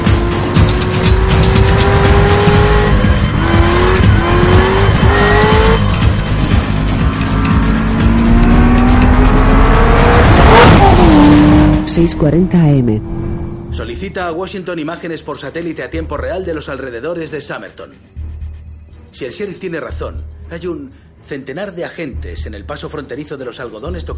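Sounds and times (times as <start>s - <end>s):
Chevrolet Corvette gear shifts: 0.0s - 12.4s
Chevrolet Corvette engine roaring while speeding down an empty road: 0.0s - 14.4s
speech: 12.0s - 13.2s, 13.8s - 18.2s, 19.1s - 24.1s.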